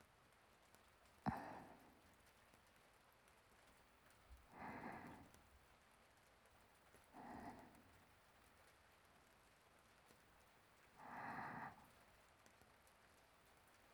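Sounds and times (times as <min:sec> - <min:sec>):
sleeping breathing: 0:01.3 - 0:02.0, 0:04.5 - 0:05.4, 0:07.2 - 0:08.0, 0:11.0 - 0:12.0.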